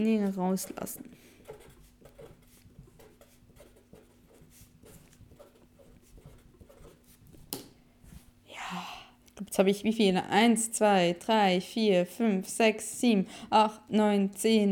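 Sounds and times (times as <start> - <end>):
speech: 0.0 - 1.3, 9.4 - 14.6
pen scratching on paper while handwriting a note: 0.0 - 7.4.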